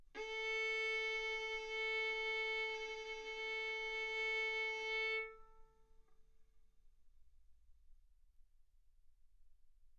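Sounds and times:
violin bowed arco notes: 0:00.2 - 0:05.7.

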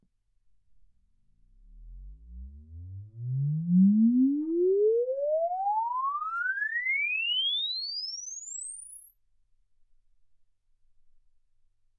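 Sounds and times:
exponential sine sweep from 10 Hz to 24 kHz: 0:03.6 - 0:09.7.

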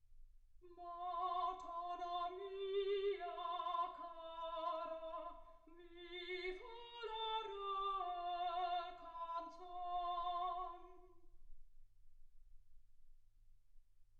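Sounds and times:
soprano singing: 0:00.6 - 0:11.2.

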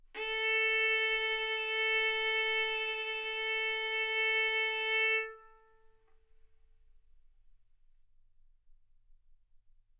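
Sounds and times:
violin bowed arco notes: 0:00.2 - 0:05.9.

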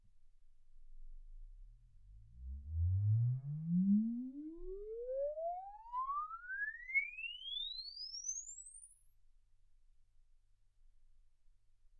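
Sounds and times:
exponential sine sweep from 10 Hz to 24 kHz: 0:02.1 - 0:09.4.

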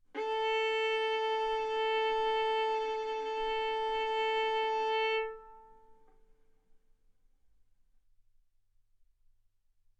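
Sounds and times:
violin bowed mezzo-forte on the A string, A4 and B4: 0:00.2 - 0:06.1.

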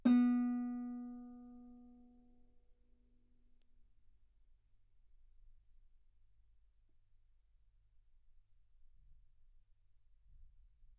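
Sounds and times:
guitar B3 note on B string played fortissimo: 0:00.0 - 0:01.8.

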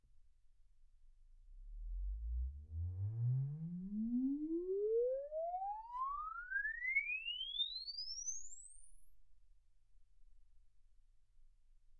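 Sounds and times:
exponential sine sweep from 10 Hz to 24 kHz: 0:01.8 - 0:09.4.

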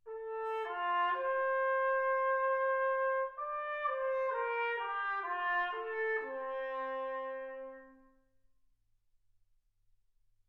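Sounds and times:
trumpet: 0:00.0 - 0:08.3.

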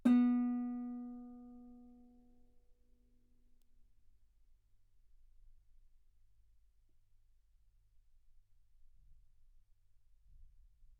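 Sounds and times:
guitar B3 note on B string played fortissimo: 0:00.0 - 0:01.8.

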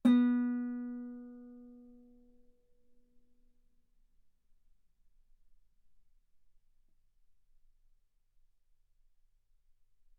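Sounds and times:
guitar note B3: 0:00.0 - 0:01.8.

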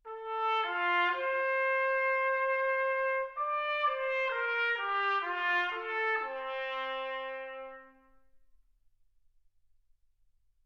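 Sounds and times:
trumpet: 0:00.0 - 0:08.4.

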